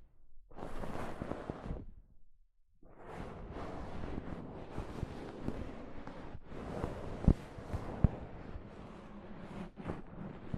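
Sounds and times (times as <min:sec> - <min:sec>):
soft fabric brushing against a microphone: 0:00.5 - 0:01.9, 0:03.0 - 0:10.5.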